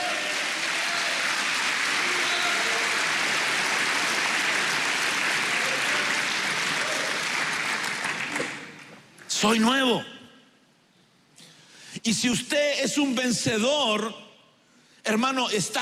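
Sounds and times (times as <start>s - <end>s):
audience clapping: 0.0s - 9.3s
speech: 9.4s - 10.1s, 12.0s - 14.2s, 15.1s - 15.8s.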